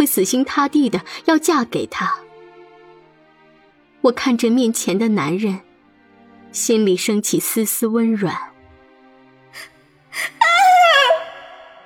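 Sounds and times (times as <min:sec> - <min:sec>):
speech: 0:00.0 - 0:02.2, 0:04.0 - 0:05.7, 0:06.5 - 0:08.5, 0:09.5 - 0:10.4
woman screaming in terror: 0:09.6 - 0:11.8
woman's sharp breaths: 0:09.6 - 0:11.8.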